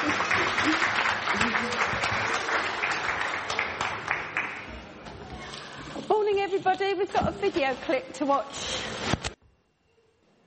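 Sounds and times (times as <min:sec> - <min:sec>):
speech: 0:00.0 - 0:01.8, 0:06.7 - 0:08.8
audience applause: 0:00.0 - 0:04.8.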